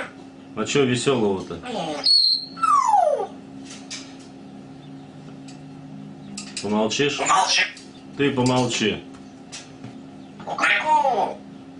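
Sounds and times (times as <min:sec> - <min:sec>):
speech: 0:00.6 - 0:02.2, 0:06.6 - 0:09.1
grey parrot whistling: 0:01.9 - 0:03.3.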